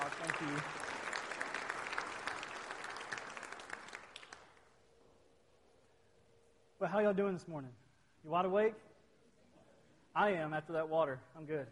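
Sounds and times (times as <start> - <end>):
audience applauding the choir: 0.0 - 4.6
speech: 0.4 - 0.8, 6.8 - 8.9, 10.1 - 11.6.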